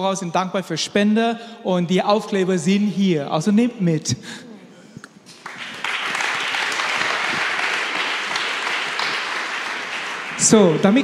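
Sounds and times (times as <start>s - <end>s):
speech: 0.0s - 4.5s, 10.4s - 11.0s
audience applause: 5.3s - 11.0s.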